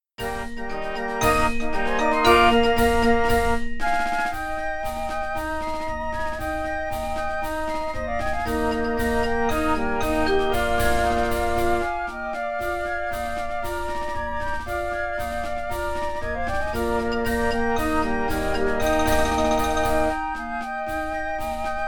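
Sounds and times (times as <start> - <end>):
flutes: 0.2 - 21.8.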